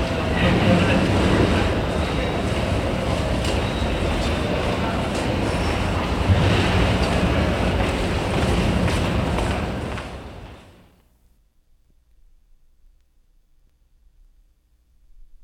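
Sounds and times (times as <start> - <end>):
Grand Central Station ambience: 0.0 - 11.3.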